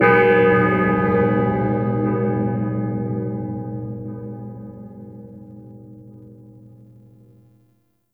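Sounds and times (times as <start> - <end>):
amphitheatre bell: 0.0 - 7.3.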